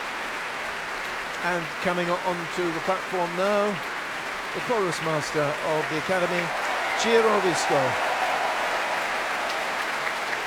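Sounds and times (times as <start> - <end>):
Proms audience applauding the standing choir: 0.0 - 10.4
speech: 1.4 - 3.9, 4.5 - 8.1.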